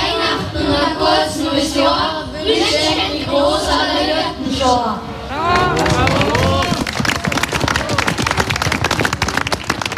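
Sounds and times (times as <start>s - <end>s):
voices: 0.0s - 6.9s
audience applause for children's nativity play: 5.5s - 9.9s.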